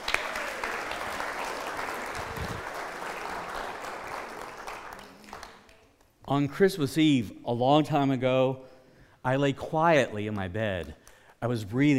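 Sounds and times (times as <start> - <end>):
audience clapping: 0.0 - 6.4
speech: 6.3 - 11.9.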